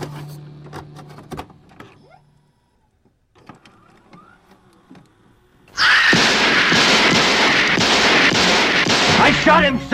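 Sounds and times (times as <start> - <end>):
gunshots in the Halloween 2 movie trailer: 6.0 - 9.7.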